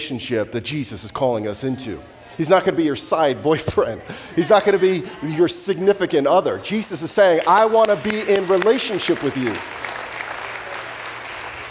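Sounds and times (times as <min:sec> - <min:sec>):
speech: 0:00.1 - 0:09.8
hands clapping: 0:07.0 - 0:11.6.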